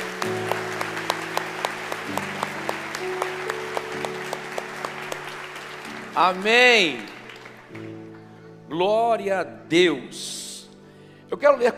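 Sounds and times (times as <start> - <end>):
audience clapping in rhythm: 0.0 - 8.6
keyboard chords: 0.0 - 11.7
speech: 6.2 - 7.2, 8.8 - 10.4, 11.3 - 11.7.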